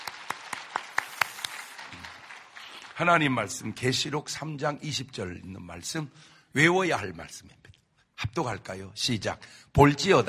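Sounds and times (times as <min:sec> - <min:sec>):
audience clapping in a steady rhythm: 0:00.0 - 0:04.0
speech: 0:03.0 - 0:07.7, 0:08.3 - 0:10.2.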